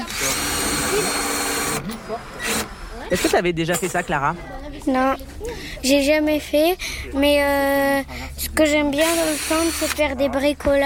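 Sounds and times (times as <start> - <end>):
power drill whirring while unscrewing a fitting: 0.0 - 3.4, 9.0 - 10.0
speech: 2.1 - 10.8.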